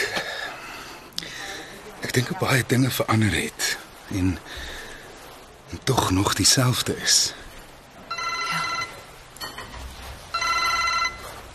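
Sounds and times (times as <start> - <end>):
speech: 2.1 - 4.8, 5.7 - 7.4
telephone ringing: 8.1 - 9.2, 10.2 - 11.5.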